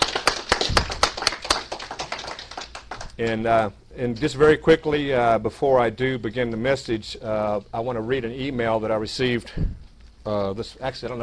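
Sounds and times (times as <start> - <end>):
church congregation clapping for newly baptized members: 0.0 - 3.3
speech: 3.2 - 11.2.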